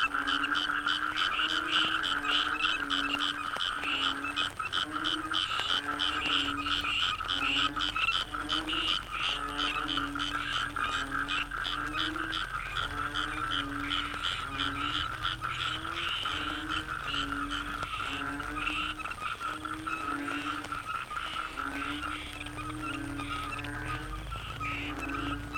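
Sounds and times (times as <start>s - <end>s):
frog chorus low croaks: 0.0s - 25.5s.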